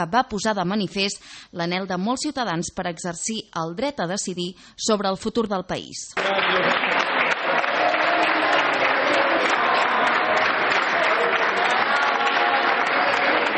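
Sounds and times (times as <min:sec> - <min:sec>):
speech: 0:00.0 - 0:06.9
large crowd applause: 0:06.2 - 0:13.5.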